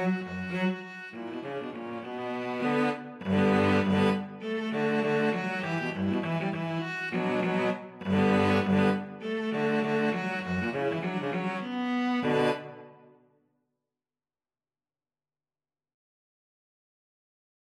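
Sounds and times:
cello: 0.0s - 13.1s
viola: 0.0s - 13.1s.

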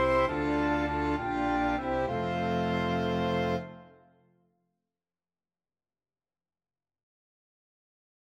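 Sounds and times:
flexible mixed ensemble of four players: 0.0s - 4.0s.

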